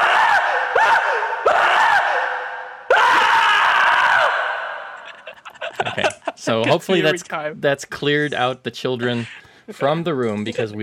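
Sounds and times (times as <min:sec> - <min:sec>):
man screaming: 0:00.0 - 0:05.0
laughter: 0:04.9 - 0:07.3
speech: 0:06.5 - 0:10.8.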